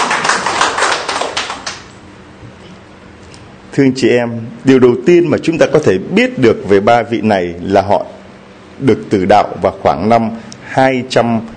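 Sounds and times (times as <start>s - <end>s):
audience applause: 0.0s - 1.9s
speech: 3.8s - 8.1s, 8.8s - 11.5s.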